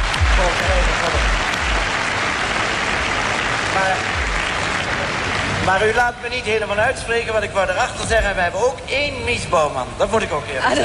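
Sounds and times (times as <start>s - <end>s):
audience applause: 0.0s - 6.1s
speech: 5.7s - 10.8s.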